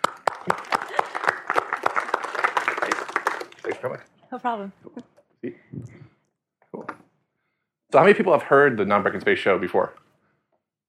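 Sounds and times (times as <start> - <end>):
audience applause: 0.0 - 4.0
speech: 0.4 - 0.8, 3.8 - 5.6, 7.9 - 10.0.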